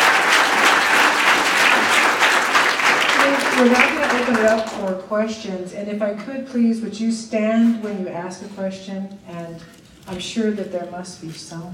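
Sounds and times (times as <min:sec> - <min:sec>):
audience applauding a panel after its talks: 0:00.0 - 0:05.0
speech: 0:03.6 - 0:11.7.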